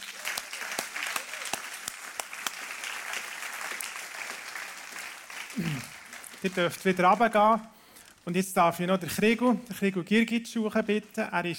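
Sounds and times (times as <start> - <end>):
audience applauding: 0.0 - 7.5
speech: 5.6 - 11.5.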